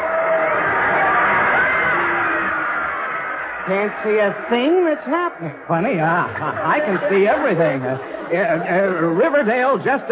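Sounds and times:
crowd cheering at football game: 0:00.0 - 0:10.1
laughter: 0:02.1 - 0:09.4
speech: 0:03.7 - 0:10.1.

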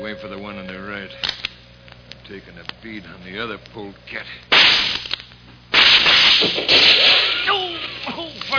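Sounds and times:
speech: 0:00.0 - 0:01.5, 0:02.3 - 0:05.1, 0:06.4 - 0:08.5
gunshot smashing a rifle: 0:04.5 - 0:05.1, 0:05.7 - 0:07.4.

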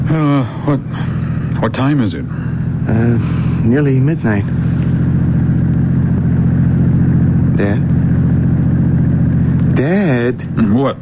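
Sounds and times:
car engine drone while driven near midnight: 0:00.0 - 0:11.0
speech: 0:00.1 - 0:04.8, 0:07.6 - 0:08.1, 0:09.8 - 0:11.0.

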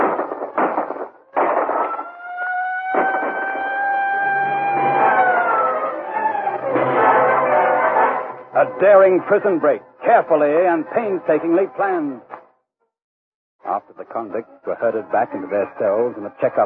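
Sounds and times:
siren wailing in the night: 0:00.0 - 0:12.2, 0:13.7 - 0:16.6
speech: 0:08.6 - 0:12.3, 0:13.8 - 0:16.6.

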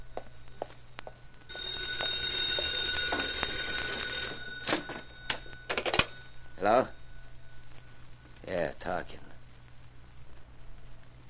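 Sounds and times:
telephone ringing: 0:01.5 - 0:07.7
speech: 0:06.6 - 0:07.0, 0:08.5 - 0:09.3.

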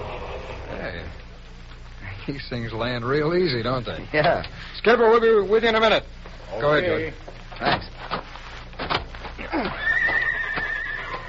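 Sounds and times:
speech: 0:02.3 - 0:07.9
Clayton horses whinnying: 0:09.4 - 0:11.2.

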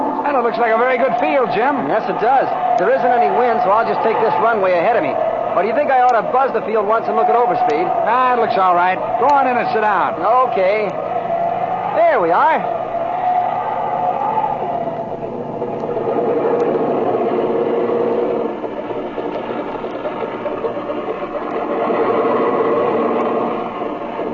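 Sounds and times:
speech: 0:00.4 - 0:11.1, 0:12.0 - 0:12.8
small airplane engine taxiing at low power after landing: 0:02.7 - 0:24.3.

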